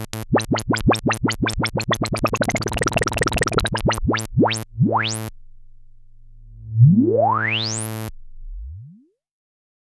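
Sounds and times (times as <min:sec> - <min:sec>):
HEX-Layer synthesizer with LFO on resonant low-pass filter: 0:00.2 - 0:05.3, 0:06.4 - 0:09.1.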